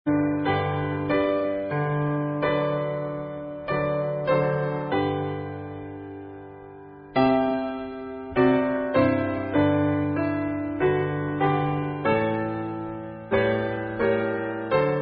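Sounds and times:
anthem piano accompaniment: 0.0 - 15.0.

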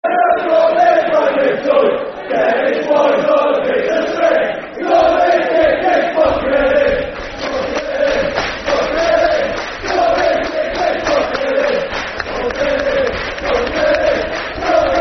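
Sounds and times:
football crowd chanting: 0.0 - 15.0.

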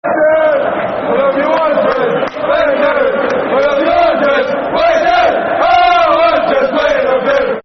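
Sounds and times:
football crowd chanting: 0.0 - 7.6.

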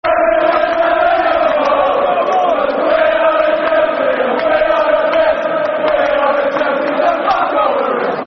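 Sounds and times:
football crowd chanting: 0.0 - 8.2.

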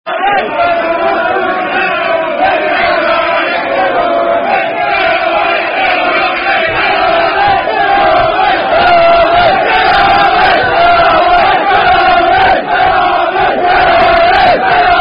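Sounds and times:
football crowd chanting: 0.1 - 15.0.

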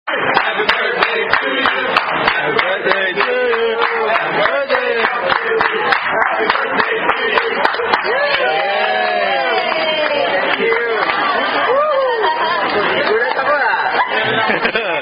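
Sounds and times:
wait staff singing birthday song: 0.1 - 11.7
laughter: 10.0 - 15.0.

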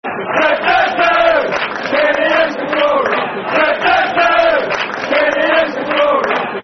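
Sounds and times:
football crowd chanting a soccer song: 0.1 - 6.6.

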